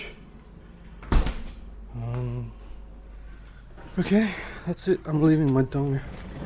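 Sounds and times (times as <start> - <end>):
fridge door shutting: 1.0 - 1.6
speech: 4.0 - 6.3.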